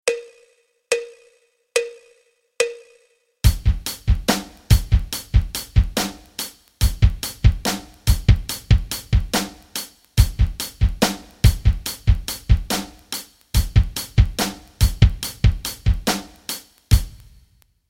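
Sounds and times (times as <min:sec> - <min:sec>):
rock rhythms: 0:03.4 - 0:17.4.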